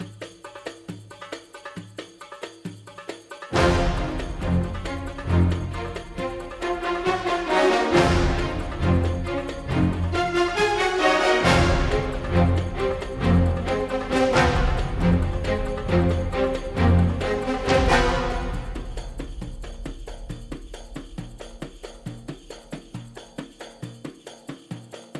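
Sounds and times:
castle suspense music loop: 0:03.6 - 0:22.6.

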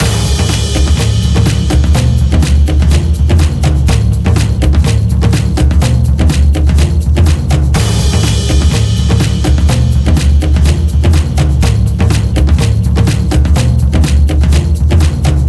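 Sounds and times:
tension music loop: 0:00.0 - 0:15.4.

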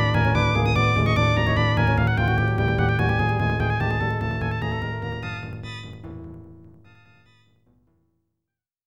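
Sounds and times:
boss battle background music: 0:00.0 - 0:06.0.

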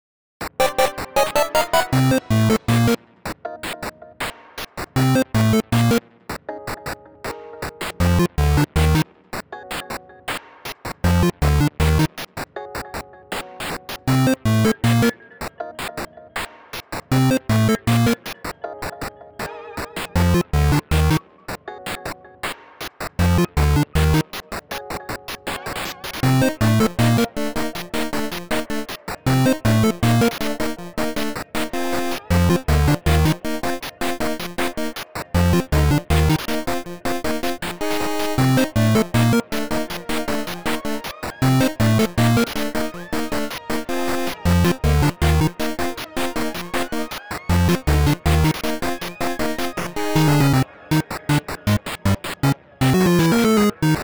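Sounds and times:
8-bit chiptune music: 0:00.6 - 0:03.0, 0:05.0 - 0:06.0, 0:08.0 - 0:09.0, 0:11.0 - 0:12.2, 0:14.1 - 0:15.1, 0:17.1 - 0:18.3, 0:20.1 - 0:21.2, 0:23.2 - 0:24.4, 0:26.2 - 0:54.0.

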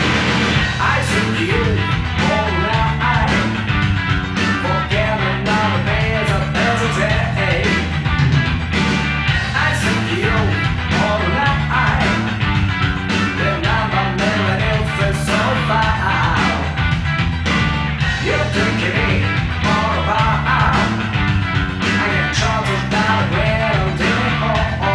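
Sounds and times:
vocal version of music: 0:00.1 - 0:24.9.

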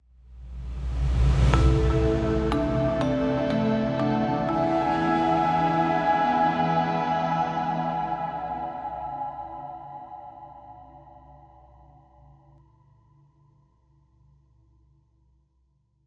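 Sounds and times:
desert music melody outro: 0:01.5 - 0:11.2.

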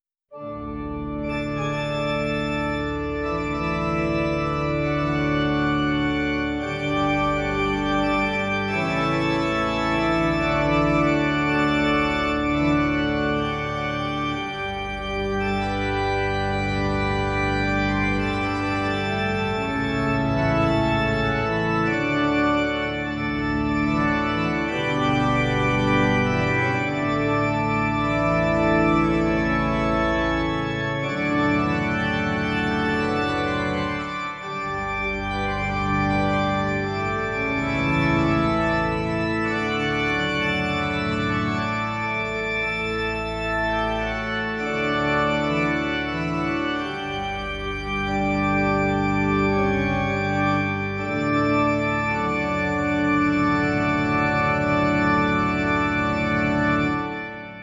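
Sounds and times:
organ fantasy: 0:00.3 - 0:57.6.

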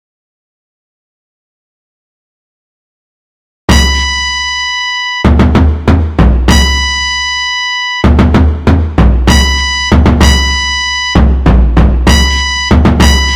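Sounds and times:
flute and drum: 0:03.7 - 0:13.3.

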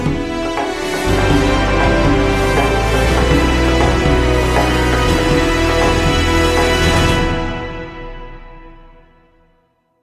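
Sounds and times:
jingle: 0:00.2 - 0:09.0.

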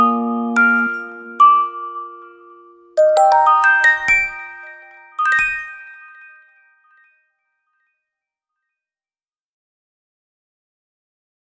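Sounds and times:
music box: 0:00.0 - 0:08.0.

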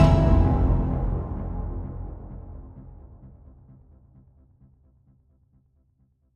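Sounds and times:
string instrument: 0:00.0 - 0:02.6.

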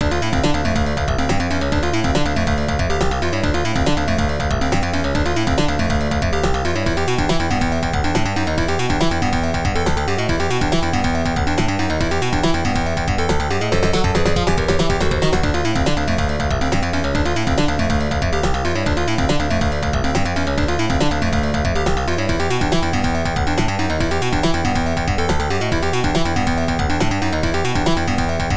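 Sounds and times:
tension music: 0:00.0 - 0:28.5.

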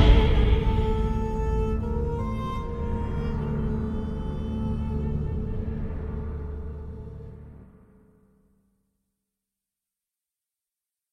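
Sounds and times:
orchestral trailer music: 0:00.0 - 0:07.9.

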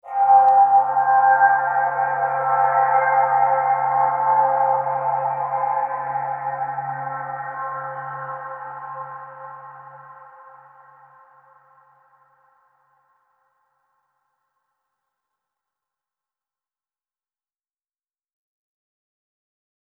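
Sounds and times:
overlay drone: 0:00.0 - 0:11.8.

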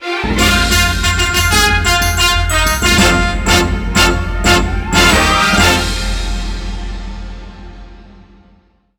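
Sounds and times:
award music sting: 0:00.2 - 0:08.7.

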